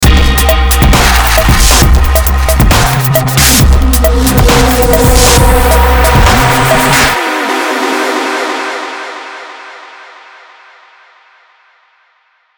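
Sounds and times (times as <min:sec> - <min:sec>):
hip hop music: 0:00.0 - 0:10.0.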